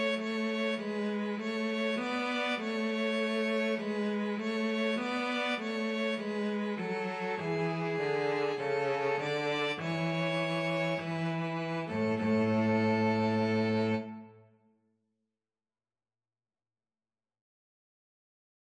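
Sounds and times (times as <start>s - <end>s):
string trio playing: 0.0s - 14.4s.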